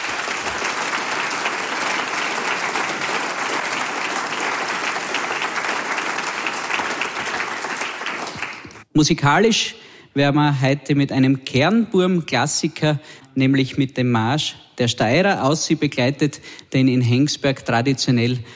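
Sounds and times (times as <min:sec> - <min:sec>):
audience applause: 0:00.0 - 0:08.8
speech: 0:09.0 - 0:18.5.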